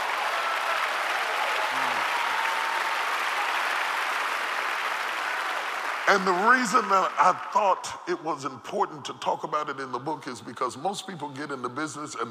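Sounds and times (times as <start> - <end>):
audience clapping: 0.0 - 7.6
speech: 6.1 - 12.3.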